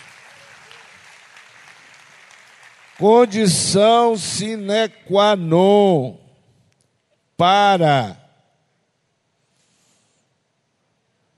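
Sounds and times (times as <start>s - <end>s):
round of applause: 0.0s - 4.2s
speech: 3.0s - 6.2s, 7.4s - 8.2s.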